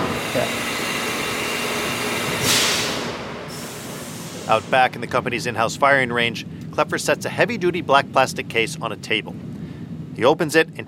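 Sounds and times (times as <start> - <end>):
CNC machine whittling a gun stock: 0.0 - 4.8
small hoses spraying coolant: 0.0 - 5.1
speech: 0.4 - 0.6, 4.5 - 9.5, 10.2 - 10.8.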